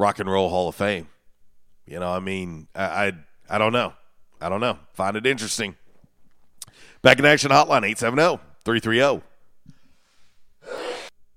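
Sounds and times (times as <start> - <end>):
speech: 0.0 - 1.1, 1.9 - 5.8, 6.8 - 9.3
sneeze: 10.6 - 11.1.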